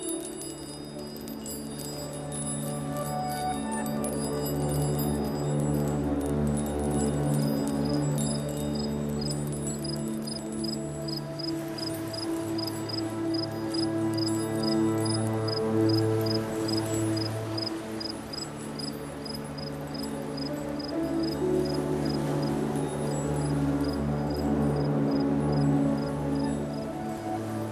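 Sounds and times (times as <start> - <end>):
manifesting meditation soundscape: 0.0 - 27.7.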